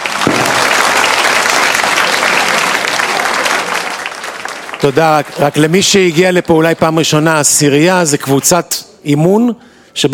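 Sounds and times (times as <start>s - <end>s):
audience applause: 0.0s - 6.4s
speech: 4.8s - 10.1s.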